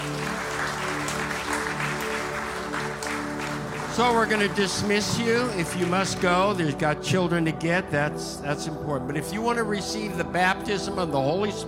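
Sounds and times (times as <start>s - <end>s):
audience applauding: 0.0s - 6.6s
speech: 4.0s - 11.6s.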